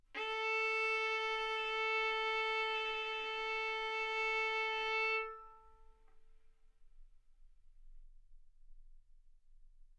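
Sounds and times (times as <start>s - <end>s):
violin bowed arco notes: 0.2s - 5.8s.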